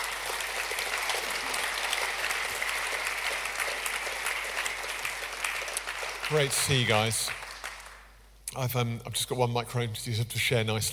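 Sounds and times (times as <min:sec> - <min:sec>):
audience applause: 0:00.0 - 0:08.1
speech: 0:06.3 - 0:07.4, 0:08.6 - 0:10.9.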